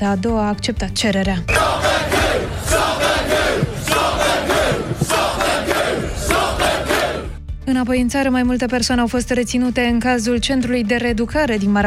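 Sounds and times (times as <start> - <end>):
speech: 0.0 - 4.4, 7.7 - 11.8
large street protest crowd shouting and chanting: 1.5 - 7.4.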